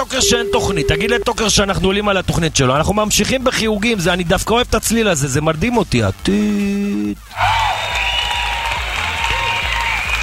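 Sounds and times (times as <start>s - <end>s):
speech: 0.0s - 7.6s
applause: 7.3s - 10.2s.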